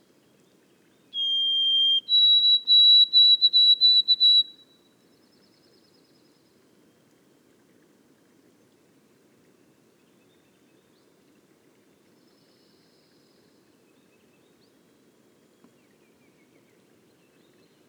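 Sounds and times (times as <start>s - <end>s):
White-throated sparrow whistled song in boreal forest: 1.1s - 4.7s.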